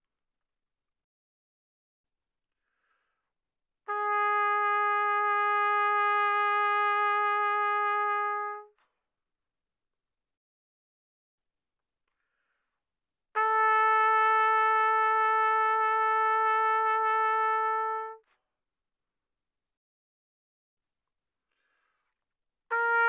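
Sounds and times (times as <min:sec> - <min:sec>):
soft trumpet vibrato notes from C4 to B4: 0:03.9 - 0:08.7, 0:13.4 - 0:18.2, 0:22.7 - 0:23.0.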